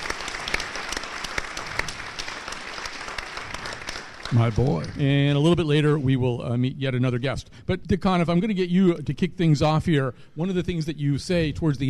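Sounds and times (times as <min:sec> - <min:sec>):
audience applause: 0:00.0 - 0:05.2
speech: 0:04.3 - 0:11.8.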